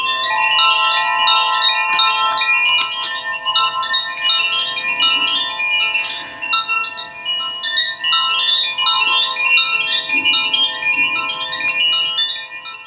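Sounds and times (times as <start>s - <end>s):
wind chime from France being played: 0.0s - 12.8s.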